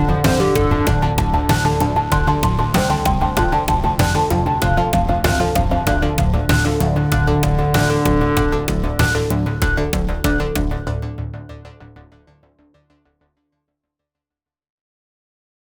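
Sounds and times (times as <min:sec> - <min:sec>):
electronic loading music at 96 bpm: 0:00.0 - 0:11.6.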